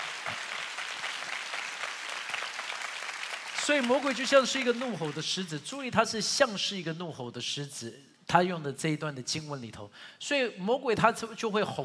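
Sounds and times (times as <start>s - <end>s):
audience applause: 0.0s - 5.2s
speech: 3.7s - 11.8s.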